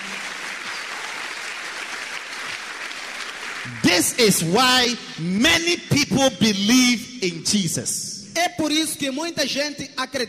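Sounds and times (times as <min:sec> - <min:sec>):
audience clapping: 0:00.0 - 0:05.2
speech: 0:03.7 - 0:10.2.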